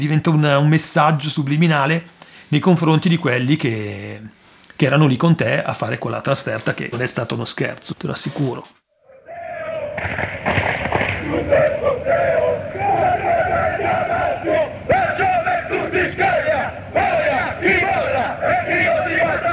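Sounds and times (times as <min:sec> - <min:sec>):
speech: 0:00.0 - 0:08.8
football ultras chanting: 0:09.0 - 0:19.5
football ultras clapping: 0:10.0 - 0:11.4.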